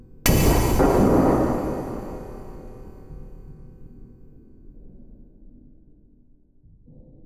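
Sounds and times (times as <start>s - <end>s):
rising tension build: 0.3s - 3.3s
impact hit: 0.3s - 3.5s.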